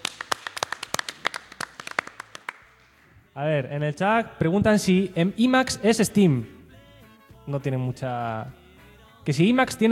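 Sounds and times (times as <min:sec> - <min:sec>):
small group applauding a host: 0:00.0 - 0:03.2
speech: 0:03.4 - 0:06.6, 0:07.5 - 0:08.6, 0:09.2 - 0:09.9.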